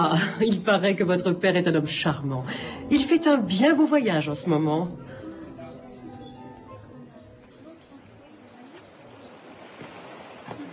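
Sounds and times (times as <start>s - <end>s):
speech: 0.0s - 5.1s
sea waves washing against the seawall at Balbec: 7.6s - 10.7s.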